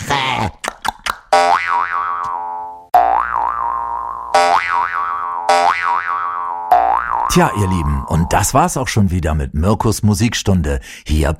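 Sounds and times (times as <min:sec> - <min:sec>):
cartoon boing sound effect for hopping: 0:01.3 - 0:08.2
speech: 0:07.4 - 0:11.3.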